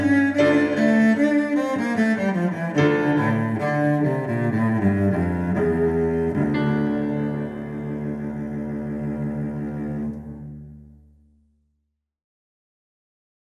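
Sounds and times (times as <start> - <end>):
two violins and basso continuo with orchestra: 0.0 - 10.7.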